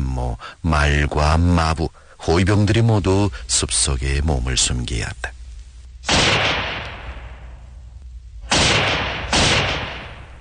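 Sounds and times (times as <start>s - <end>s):
speech: 0.3s - 5.4s
bullets whizzing overhead: 6.0s - 7.3s, 8.5s - 10.3s
ear-splitting gunshots: 6.0s - 7.6s, 8.4s - 10.3s.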